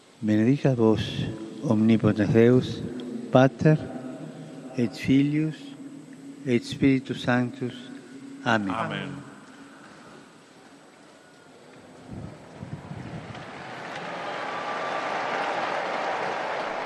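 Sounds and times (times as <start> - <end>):
speech: 0.2 - 4.0, 4.8 - 5.7, 6.4 - 9.3
large crowd applauding on a square: 12.4 - 16.8.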